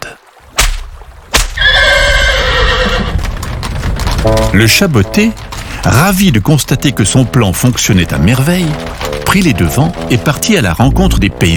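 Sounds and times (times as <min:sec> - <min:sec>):
horse drawing the king's carriage whinnying: 0:01.6 - 0:03.4
sharp clacks: 0:03.2 - 0:11.2
speech: 0:04.5 - 0:11.5.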